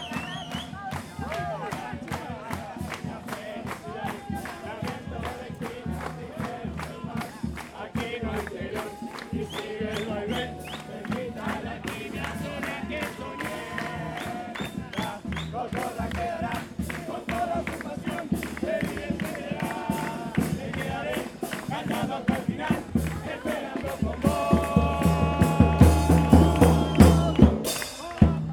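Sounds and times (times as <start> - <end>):
Uruguayan carnival murga music: 0.0 - 28.5.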